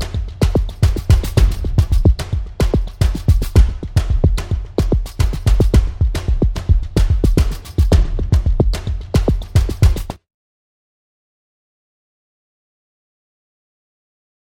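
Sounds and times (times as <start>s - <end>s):
drums: 0.0s - 10.2s.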